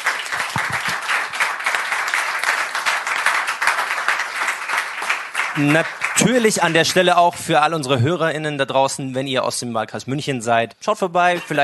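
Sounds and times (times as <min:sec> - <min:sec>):
applause from studio audience: 0:00.0 - 0:06.8
speech: 0:05.6 - 0:11.6.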